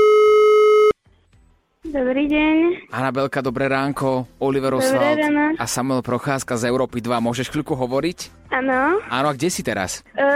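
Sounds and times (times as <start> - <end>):
telephone ringback tone while calling: 0.0 - 1.0
speech: 2.0 - 10.3.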